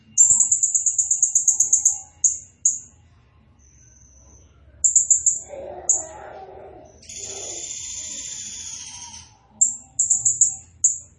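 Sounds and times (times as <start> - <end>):
blue-crowned hanging parrot calls: 0.2 - 2.9, 4.9 - 11.1.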